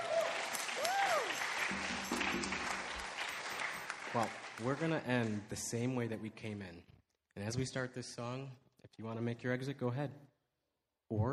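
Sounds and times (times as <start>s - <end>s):
church audience applause: 0.0s - 5.4s
speech: 4.1s - 10.3s, 11.1s - 11.3s.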